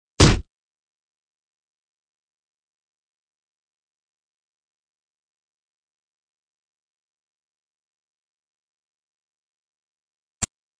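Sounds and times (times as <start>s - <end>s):
fight sounds: 0.2s - 0.5s.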